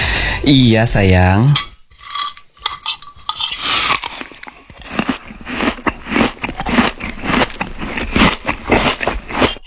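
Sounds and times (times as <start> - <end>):
speech: 0.4 - 1.7
cutlery clinking: 1.6 - 3.8
crunchy chewing of a meal: 3.4 - 9.6.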